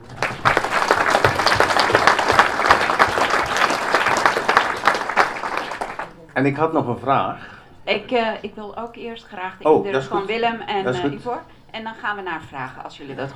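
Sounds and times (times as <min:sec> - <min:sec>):
crowd applauding: 0:00.0 - 0:06.2
speech: 0:06.4 - 0:13.3.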